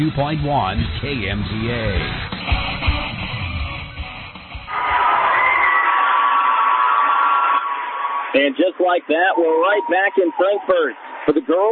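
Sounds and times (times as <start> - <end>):
speech: 0.0 - 2.7, 8.4 - 11.7
amped up basketball crowd cheering: 4.7 - 11.7.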